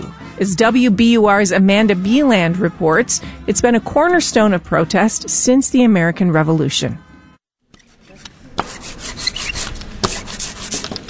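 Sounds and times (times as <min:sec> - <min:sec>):
speech: 0:00.4 - 0:07.1
paint roller spreading ink on linoleum: 0:07.9 - 0:11.0.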